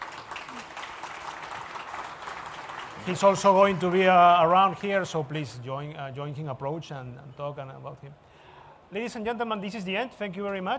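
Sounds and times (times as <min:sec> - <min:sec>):
audience applause at an afternoon conversation event: 0:00.0 - 0:04.9
speech: 0:03.1 - 0:08.2, 0:08.9 - 0:10.7.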